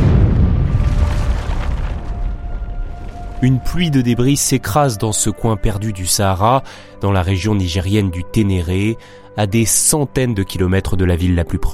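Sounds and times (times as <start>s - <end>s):
bomb explosion: 0.0s - 4.6s
low rumble: 0.0s - 4.6s
speech: 3.4s - 11.7s.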